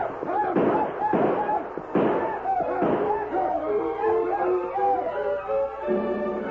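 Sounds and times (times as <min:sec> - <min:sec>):
gunshots: 0:00.0 - 0:04.4
people yelling: 0:00.0 - 0:06.4.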